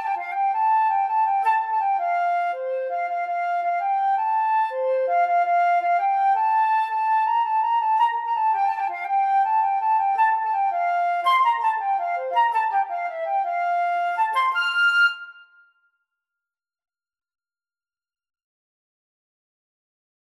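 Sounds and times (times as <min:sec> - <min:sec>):
flute: 0:00.0 - 0:15.9.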